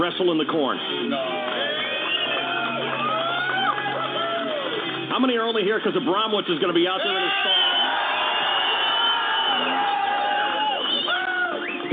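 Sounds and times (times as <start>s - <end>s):
speech: 0.0s - 1.6s, 5.2s - 7.7s
crowd cheering and whooping at a cream corn wrestling show: 1.2s - 5.0s, 7.0s - 11.9s.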